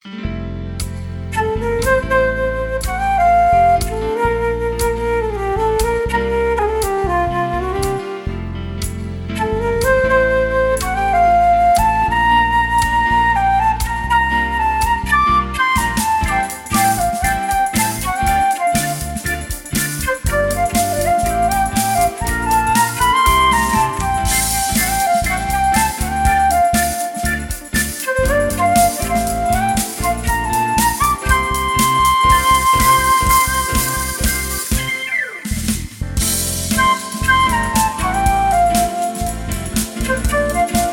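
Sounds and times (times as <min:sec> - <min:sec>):
flute: 0:01.3 - 0:08.6, 0:09.3 - 0:36.0, 0:36.6 - 0:40.9.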